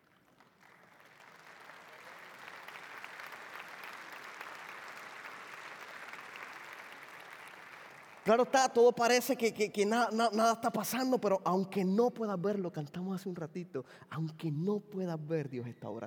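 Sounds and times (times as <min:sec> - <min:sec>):
audience applauding: 0:00.0 - 0:08.5
speech: 0:08.3 - 0:16.0.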